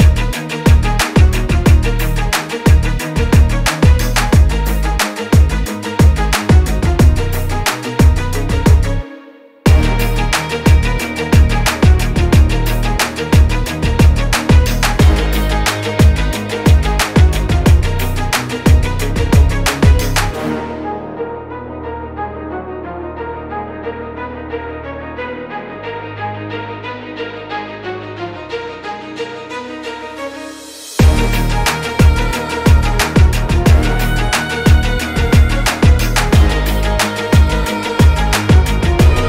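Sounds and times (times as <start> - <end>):
hard motivational epic rock type hip hop instrumental beat: 0.0 - 9.0, 9.7 - 21.2, 28.5 - 39.2.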